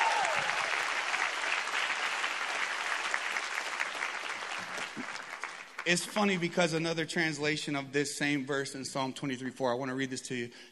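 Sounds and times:
audience applause: 0.0s - 6.5s
speech: 5.8s - 10.7s.

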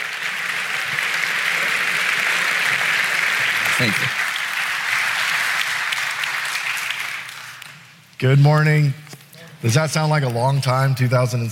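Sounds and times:
audience clapping to welcome a guest speaker at Mount Pleasant: 0.0s - 8.2s
speech: 3.8s - 4.2s, 8.2s - 9.0s, 9.6s - 11.4s.

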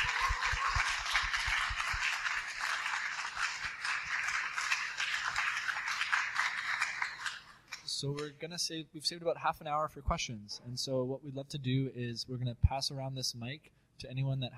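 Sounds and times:
audience applause: 0.0s - 7.9s
speech: 8.0s - 14.5s.

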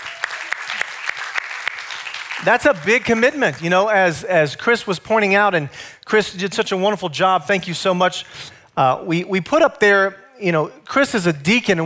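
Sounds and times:
audience clapping for the newly immersed: 0.0s - 4.0s
speech: 2.4s - 11.8s.

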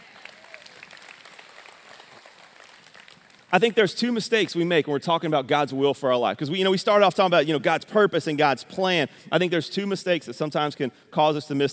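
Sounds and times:
audience clapping hands: 0.0s - 3.7s
speech: 3.5s - 11.7s.

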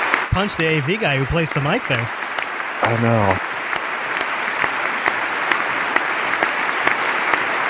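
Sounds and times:
crowd applause: 0.0s - 7.6s
speech: 0.4s - 2.2s, 2.8s - 3.5s
single pair of hands clapping slowly: 1.9s - 7.6s.

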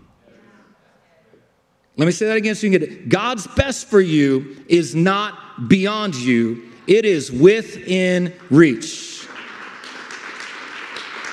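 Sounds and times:
speech: 2.0s - 9.2s
crowd clapping: 8.3s - 11.3s.

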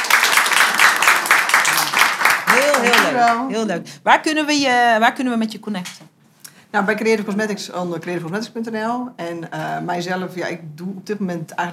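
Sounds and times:
warm applause from an audience: 0.0s - 3.5s
speech: 3.1s - 6.0s, 6.7s - 11.7s.

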